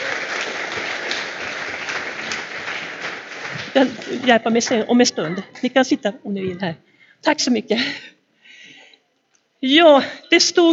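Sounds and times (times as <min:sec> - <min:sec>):
audience applause: 0:00.0 - 0:04.9
speech: 0:03.8 - 0:08.1, 0:09.6 - 0:10.7.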